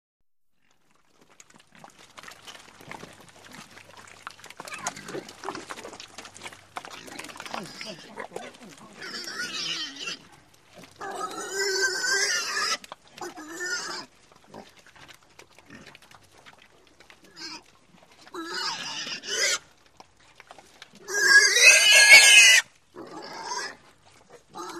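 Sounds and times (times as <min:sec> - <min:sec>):
pig squealing in harsh bursts: 0:04.6 - 0:05.6, 0:06.9 - 0:14.1, 0:18.3 - 0:19.6, 0:21.0 - 0:23.8.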